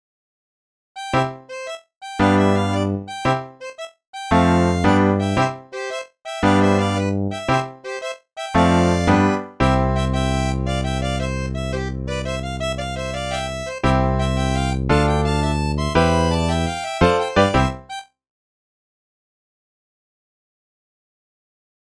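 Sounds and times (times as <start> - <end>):
Gascon rondeau dance tune: 1.0 - 18.0.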